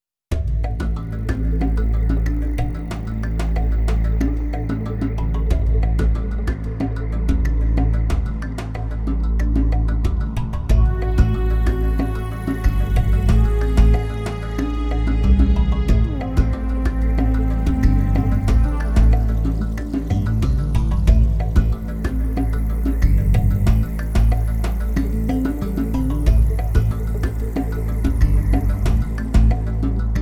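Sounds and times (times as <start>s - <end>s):
Korg M3 synthesizer: 0.3s - 30.1s.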